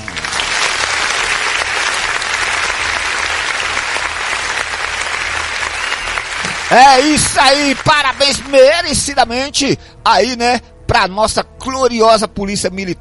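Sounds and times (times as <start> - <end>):
applause: 0.0 - 8.7
speech: 6.7 - 12.9.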